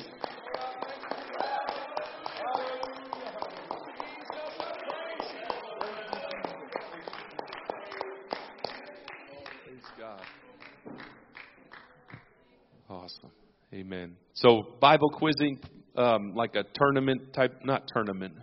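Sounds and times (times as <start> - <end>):
audience clapping hands: 0.0 - 12.2
speech: 13.8 - 18.4.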